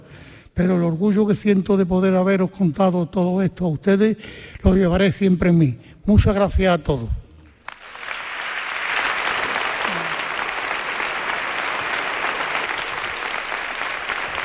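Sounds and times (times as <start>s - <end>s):
speech: 0.6s - 7.2s
audience applause: 7.6s - 14.4s.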